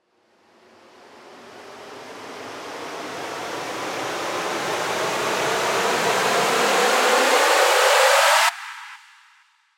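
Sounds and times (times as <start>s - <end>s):
uplifter riser: 4.8s - 8.6s.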